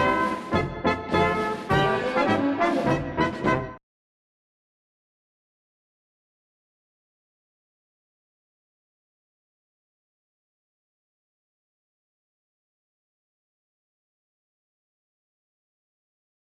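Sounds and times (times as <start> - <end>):
polka music: 0.0 - 3.8.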